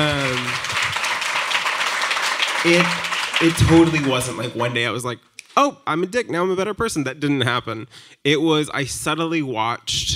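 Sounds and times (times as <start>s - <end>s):
audience clapping: 0.0s - 5.0s
speech: 2.6s - 10.1s.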